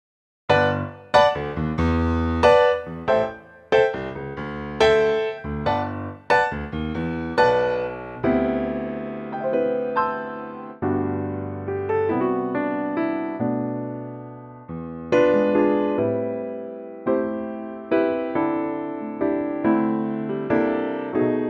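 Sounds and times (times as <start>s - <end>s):
piano G note: 0.5s - 21.4s.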